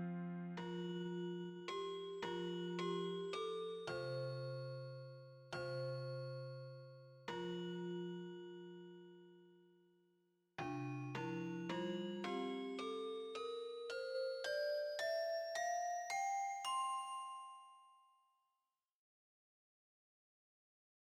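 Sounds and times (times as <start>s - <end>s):
handbells ringing: 0.6s - 9.0s, 10.6s - 18.2s.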